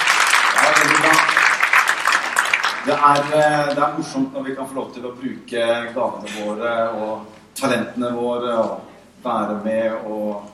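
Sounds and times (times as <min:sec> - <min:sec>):
audience clapping: 0:00.0 - 0:04.1
speech: 0:02.9 - 0:10.5.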